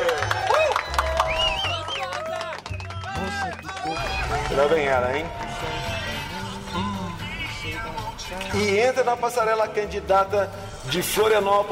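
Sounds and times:
people clapping: 0.0s - 6.2s
crowd cheering and shouting: 0.0s - 7.5s
whistles: 0.4s - 4.4s
speech: 4.6s - 5.9s, 8.5s - 11.7s.

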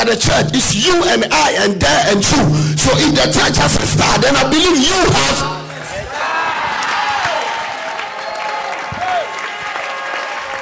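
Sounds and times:
speech: 0.0s - 5.6s
audience shouting: 5.8s - 10.5s.

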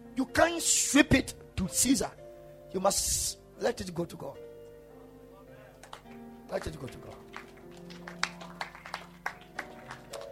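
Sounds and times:
speech: 0.2s - 4.4s, 6.5s - 7.2s
audience clapping: 5.7s - 10.3s.

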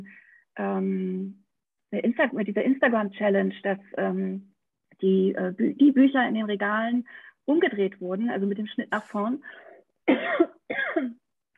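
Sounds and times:
speech: 0.6s - 11.2s
raspy coughs from a scratchy throat: 10.1s - 11.2s.

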